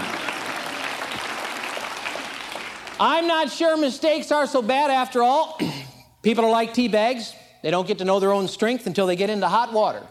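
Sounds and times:
crowd applauding: 0.0 - 3.3
speech: 3.0 - 10.0.

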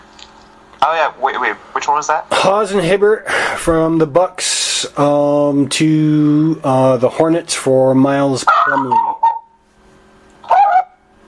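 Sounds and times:
speech: 0.8 - 9.1
dog barking: 8.5 - 9.5, 10.4 - 11.0.

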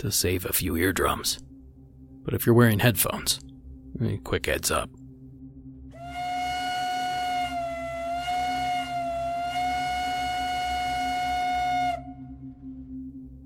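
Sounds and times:
speech: 0.0 - 1.5, 2.3 - 5.0
standard American steam train whistle from the 1840s and 50s: 6.0 - 12.6.

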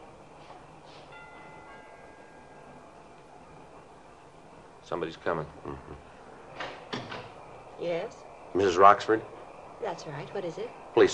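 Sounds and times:
doorbell ringing: 1.1 - 2.8
speech: 4.9 - 6.1, 7.8 - 11.1.

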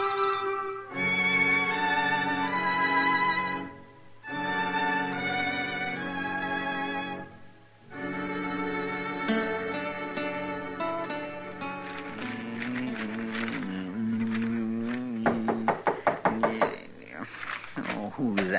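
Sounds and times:
sustained musical passage: 0.0 - 16.7
knocking on a door: 15.2 - 16.8.

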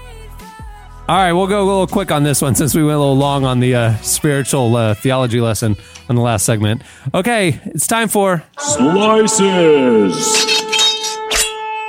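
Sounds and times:
speech: 1.1 - 10.6
shofar blast: 8.6 - 11.8.

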